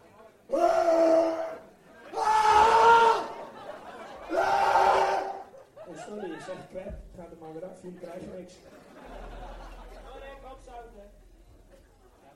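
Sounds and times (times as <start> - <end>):
crowd shouting loudly together: 0.5 - 5.6
laughter: 1.8 - 7.0, 7.8 - 12.3
speech: 6.7 - 9.2.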